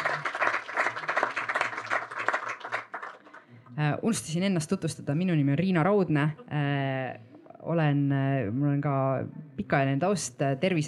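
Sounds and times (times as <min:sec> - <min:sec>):
audience applause: 0:00.0 - 0:03.4
speech: 0:03.8 - 0:10.8.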